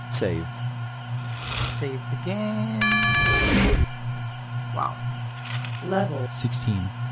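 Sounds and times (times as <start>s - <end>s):
speech: 0.2s - 0.6s, 1.8s - 3.9s, 4.8s - 5.1s, 5.8s - 7.0s
low electronic engine hum in video game: 0.9s - 5.4s.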